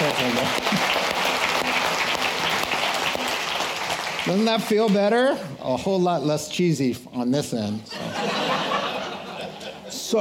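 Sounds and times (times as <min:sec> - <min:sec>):
small group of people clapping together: 0:00.0 - 0:05.2
speech: 0:04.2 - 0:08.1
laughter: 0:07.9 - 0:10.1.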